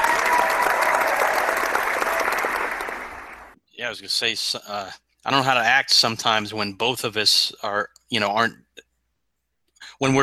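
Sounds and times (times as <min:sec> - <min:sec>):
applause: 0:00.0 - 0:03.6
speech: 0:03.9 - 0:08.6, 0:09.9 - 0:10.2.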